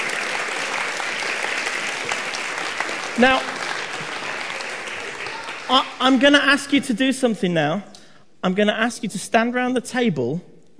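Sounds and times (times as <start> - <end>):
audience applause: 0.0 - 6.2
speech: 3.2 - 3.6, 5.7 - 10.7.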